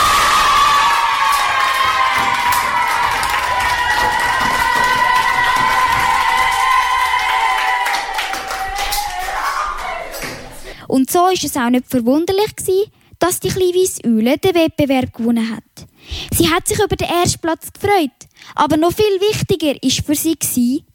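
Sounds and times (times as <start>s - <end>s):
steady clapping: 0.0s - 10.6s
crowd cheering and whooping: 0.0s - 10.7s
speech: 11.3s - 20.9s.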